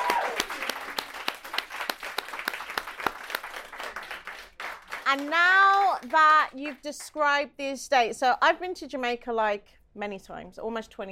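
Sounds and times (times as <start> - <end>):
audience round of applause: 0.0 - 6.1
speech: 5.1 - 11.1.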